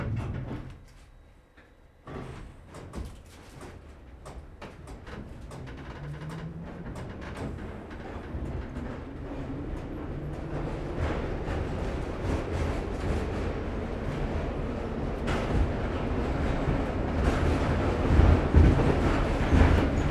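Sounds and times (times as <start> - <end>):
London subway doors closing: 0.0 - 0.8, 2.0 - 20.0
passengers boarding London subway train: 2.1 - 20.0
London subway train approaching with a racket: 3.6 - 20.0
passengers disembarking at subway stop: 4.8 - 20.0.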